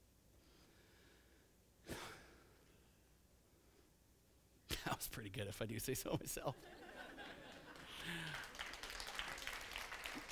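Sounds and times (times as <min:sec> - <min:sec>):
speech: 0:04.8 - 0:07.2
audience applause: 0:07.5 - 0:10.2.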